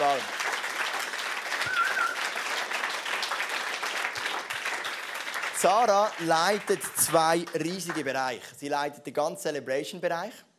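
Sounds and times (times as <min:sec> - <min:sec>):
crowd applauding: 0:00.0 - 0:08.4
faint whistle-like tone: 0:01.7 - 0:02.2
speech: 0:05.6 - 0:10.5.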